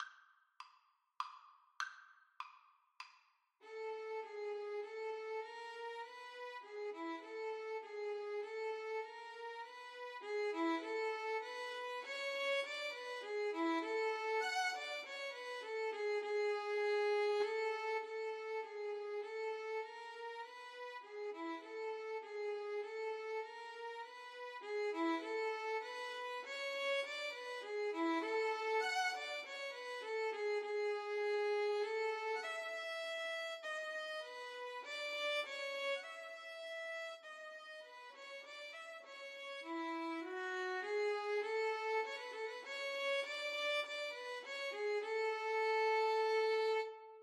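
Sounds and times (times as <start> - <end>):
violin duet: 3.7 - 37.2, 38.0 - 47.2.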